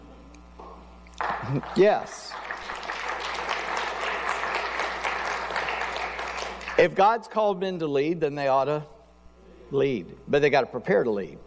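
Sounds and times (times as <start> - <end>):
audience applauding: 1.2 - 6.9
speech: 1.5 - 2.4, 6.8 - 9.0, 9.7 - 11.4.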